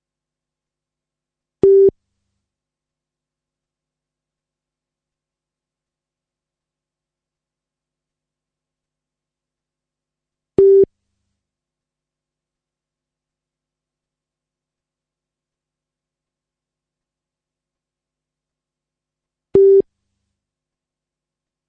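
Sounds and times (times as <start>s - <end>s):
beep test training beeps: 19.6s - 19.8s.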